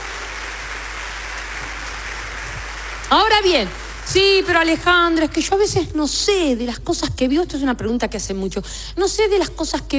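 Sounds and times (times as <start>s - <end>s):
audience applause: 0.0s - 4.4s
speech: 3.1s - 9.9s.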